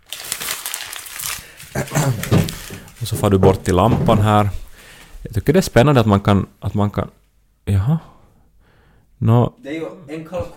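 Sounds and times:
paper crumpling: 0:00.0 - 0:03.9
speech: 0:01.8 - 0:02.4, 0:03.0 - 0:04.6, 0:05.2 - 0:08.1, 0:09.2 - 0:10.5.

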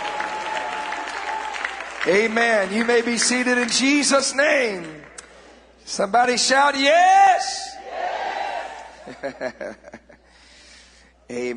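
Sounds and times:
audience clapping hands: 0:00.0 - 0:05.2
speech: 0:02.0 - 0:05.1, 0:05.9 - 0:07.7, 0:09.1 - 0:10.0, 0:11.3 - 0:11.5
laughter: 0:08.8 - 0:10.3.

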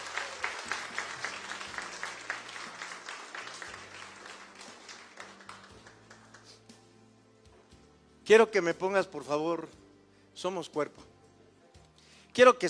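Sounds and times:
audience applause: 0:00.0 - 0:06.6
speech: 0:08.3 - 0:09.8, 0:10.4 - 0:11.1, 0:12.4 - 0:12.6.

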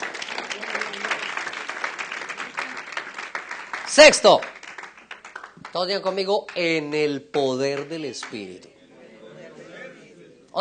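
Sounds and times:
audience applauding: 0:00.0 - 0:08.7
speech: 0:03.9 - 0:04.5, 0:05.8 - 0:08.7
faint murmur of voices: 0:07.8 - 0:10.6.

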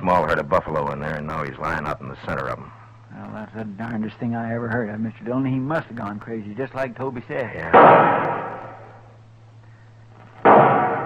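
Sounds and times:
low steady hum: 0:00.0 - 0:11.0
speech: 0:00.4 - 0:02.8, 0:03.4 - 0:08.5
rifle shots fired as a signal for help: 0:07.6 - 0:09.0, 0:10.4 - 0:11.0.

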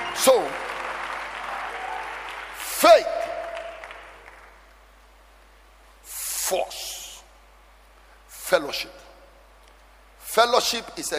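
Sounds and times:
audience clapping hands: 0:00.0 - 0:04.7
speech: 0:00.2 - 0:00.7, 0:02.8 - 0:03.2, 0:10.4 - 0:11.1.

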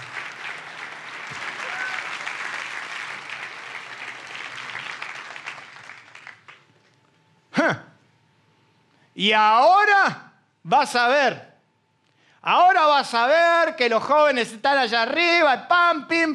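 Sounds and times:
audience applause: 0:00.0 - 0:06.8
speech: 0:07.6 - 0:07.9, 0:09.2 - 0:11.5, 0:12.4 - 0:16.3.

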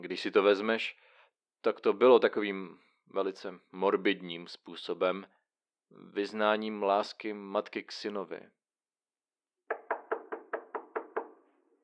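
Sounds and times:
speech: 0:00.0 - 0:08.6
knocking on a door: 0:09.7 - 0:11.4.

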